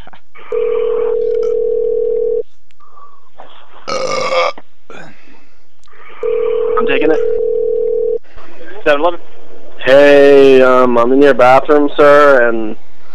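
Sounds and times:
telephone dial tone: 0:00.5 - 0:02.4, 0:06.2 - 0:08.2
speech: 0:08.9 - 0:12.8.

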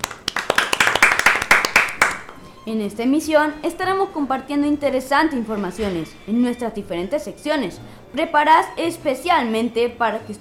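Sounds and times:
applause for a school radio program's award: 0:00.0 - 0:02.5
speech: 0:02.7 - 0:10.3.

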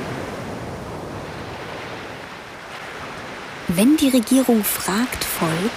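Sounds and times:
single ocean wave crashing in a roar of surf: 0:03.7 - 0:05.7
speech: 0:03.8 - 0:05.7.

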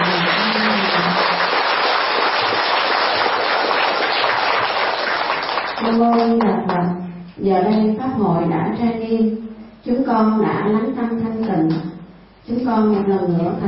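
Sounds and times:
audience applause: 0:00.0 - 0:06.0
speech: 0:06.0 - 0:06.6, 0:07.4 - 0:11.9, 0:12.5 - 0:13.6.

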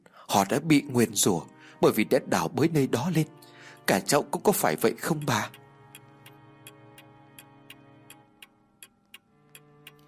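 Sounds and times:
speech: 0:00.3 - 0:05.6
clock ticking in a room: 0:01.9 - 0:10.0.

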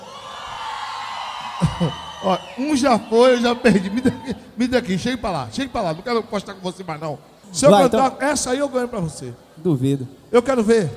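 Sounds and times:
audience at a live show in Valente, Bahia, Brazil whooping and screaming: 0:00.0 - 0:04.5
speech: 0:01.8 - 0:10.9.

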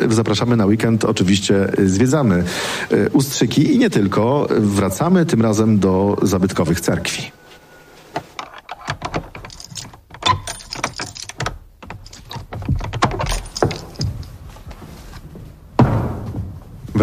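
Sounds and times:
speech: 0:00.1 - 0:07.4
heavy wooden door of a historic Orthodox church in Ustrzyki, Poland opening: 0:08.2 - 0:14.7
keys jangling and rattling in a lock: 0:08.2 - 0:14.7.

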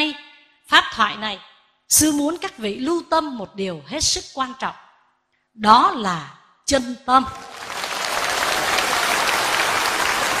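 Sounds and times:
speech: 0:00.0 - 0:04.8, 0:05.6 - 0:07.7
audience applauding a Buddhist nun's dharma talk: 0:07.4 - 0:10.3.

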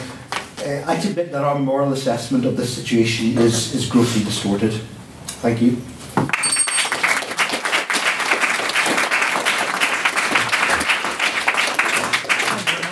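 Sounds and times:
speech: 0:00.6 - 0:05.9
audience applause: 0:06.8 - 0:12.9.

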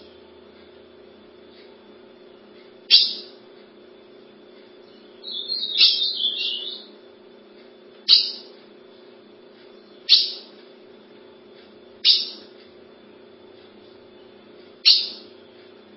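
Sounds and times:
low mechanical hum: 0:00.0 - 0:15.9
Ultramarine grosbeak ringing call notes: 0:02.9 - 0:03.4, 0:04.8 - 0:06.9, 0:08.1 - 0:08.5, 0:10.0 - 0:10.5, 0:12.0 - 0:12.5, 0:14.8 - 0:15.3.

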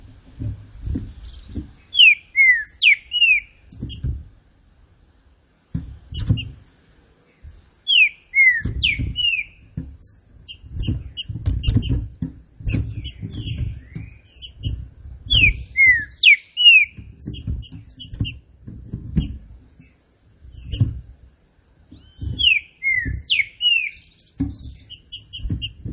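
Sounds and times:
low dull thuds: 0:00.0 - 0:06.8, 0:07.4 - 0:25.9
Green-winged saltator singing slurred whistles: 0:01.2 - 0:03.6, 0:07.9 - 0:11.0, 0:15.3 - 0:17.4, 0:22.0 - 0:25.8.

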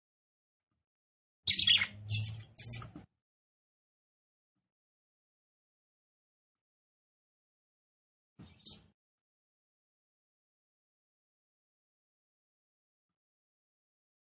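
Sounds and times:
female red-cowled cardinal giving high scratchy chirps: 0:01.5 - 0:02.9.

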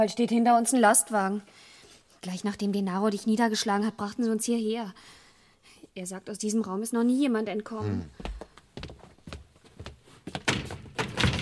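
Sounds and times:
speech: 0:00.0 - 0:05.2, 0:06.0 - 0:08.4
heavy iron garage door being rattled and knocked: 0:10.4 - 0:11.4.

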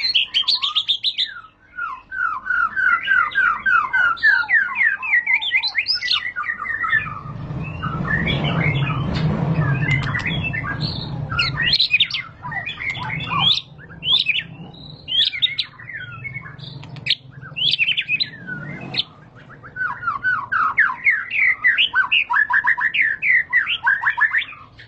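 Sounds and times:
white-rumped shama singing whistles and chips: 0:00.0 - 0:24.8
low hum: 0:06.2 - 0:21.0
loud rushing noise: 0:06.6 - 0:20.1.

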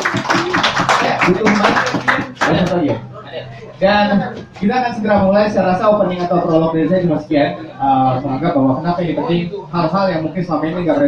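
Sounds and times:
audience clapping: 0:00.0 - 0:02.9
speech: 0:01.3 - 0:01.5, 0:03.8 - 0:11.0.

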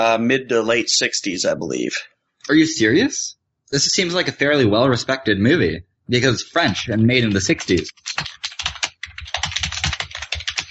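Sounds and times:
speech: 0:00.0 - 0:08.3
typing on a computer keyboard: 0:07.2 - 0:10.6.

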